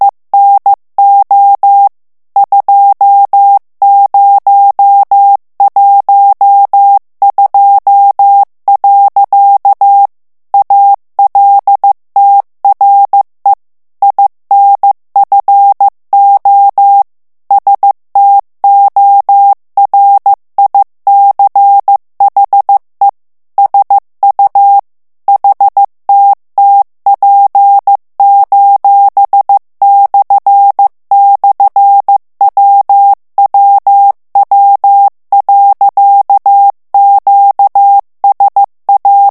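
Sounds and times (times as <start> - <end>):
morse code plain text at 14 words per minute: 0.4 - 39.2.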